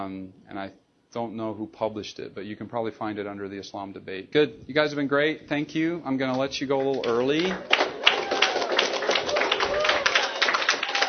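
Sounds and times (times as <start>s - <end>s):
speech: 0.0s - 7.9s
audience applause: 6.8s - 11.0s.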